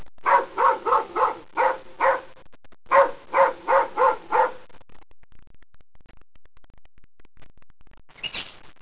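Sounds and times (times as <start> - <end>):
dogs: 0.3 - 2.3, 2.9 - 4.6.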